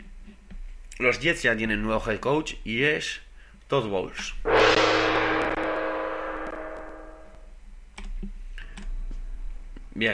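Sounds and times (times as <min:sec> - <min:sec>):
speech: 0:01.0 - 0:05.0
gong struck: 0:04.5 - 0:07.4
low rumble: 0:04.5 - 0:07.4.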